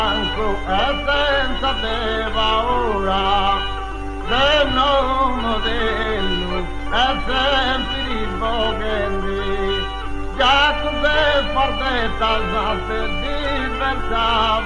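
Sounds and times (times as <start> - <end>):
accompanied monodic singing in canzone a curba style from Cabras: 0.0 - 14.6.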